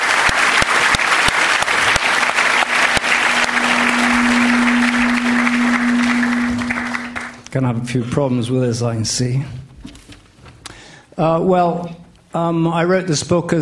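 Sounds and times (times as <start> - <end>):
audience applause: 0.0 - 7.4
speech: 7.6 - 9.6, 11.2 - 13.6.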